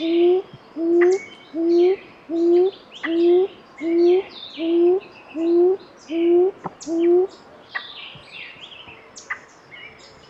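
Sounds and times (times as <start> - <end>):
gray-fronted quail-dove song of low hollow hooting notes in Soplillar Cuba: 0.0 - 7.3.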